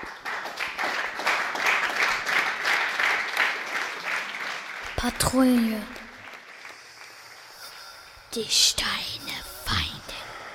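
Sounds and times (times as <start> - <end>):
audience applause after a play: 0.0 - 8.2
speech: 5.0 - 6.0, 8.4 - 9.9.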